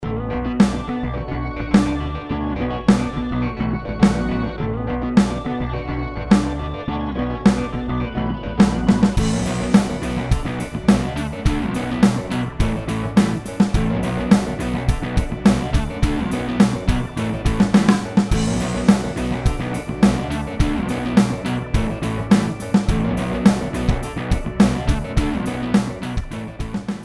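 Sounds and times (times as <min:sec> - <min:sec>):
sample song: 0:00.0 - 0:27.0.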